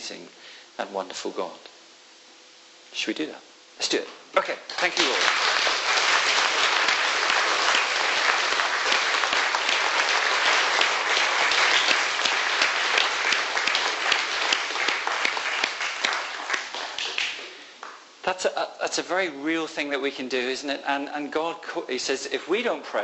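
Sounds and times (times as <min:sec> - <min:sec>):
speech: 0:00.0 - 0:01.7, 0:03.0 - 0:05.7, 0:18.3 - 0:23.0
audience clapping: 0:04.7 - 0:18.1.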